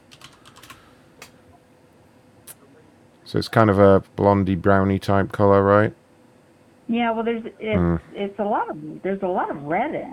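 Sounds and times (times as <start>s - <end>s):
keys tapping on a computer keyboard while a wig color is looked up: 0.0s - 1.3s
speech: 3.3s - 6.0s, 6.9s - 10.1s.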